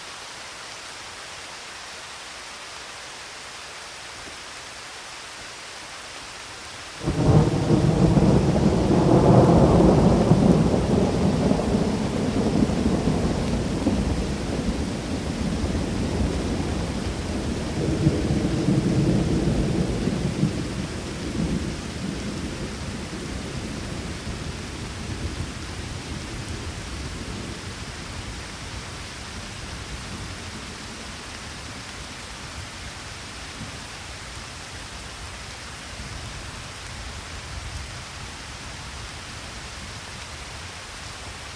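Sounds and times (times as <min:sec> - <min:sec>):
rain in the Alps: 0:00.0 - 0:41.5
thunderstorm in the Alps: 0:07.0 - 0:24.1.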